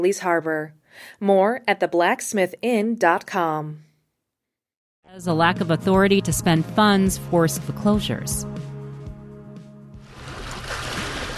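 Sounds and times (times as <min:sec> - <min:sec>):
speech: 0:00.0 - 0:03.9, 0:05.1 - 0:08.7
Lake Superior bay water lapping against the shore: 0:10.0 - 0:11.3.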